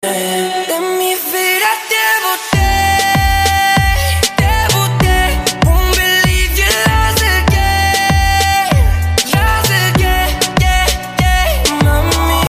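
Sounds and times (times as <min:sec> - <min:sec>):
remix music: 0:00.0 - 0:12.4.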